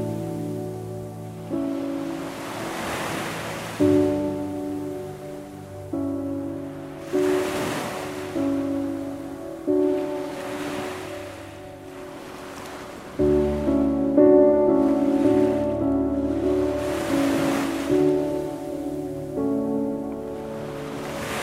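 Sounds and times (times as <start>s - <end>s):
ocean waves for sleep meditation: 0.0s - 21.4s.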